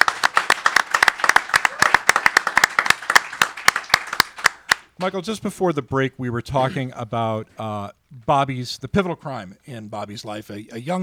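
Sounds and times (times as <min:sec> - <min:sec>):
studio audience at a live bookstore event clapping: 0:00.0 - 0:05.2
speech: 0:05.0 - 0:11.0.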